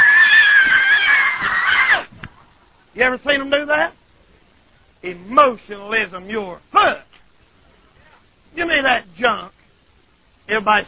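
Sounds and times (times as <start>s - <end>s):
man imitating someone screaming and hollering: 0.0s - 2.1s
speech: 3.0s - 4.0s, 5.0s - 7.1s, 8.5s - 9.6s, 10.5s - 10.8s.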